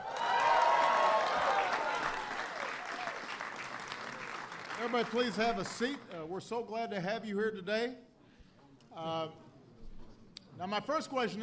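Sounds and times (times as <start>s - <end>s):
audience applause for the Alabama Crimson Tide at the White House: 0.0s - 6.1s
speech: 4.9s - 8.1s, 9.0s - 9.4s, 10.6s - 11.4s.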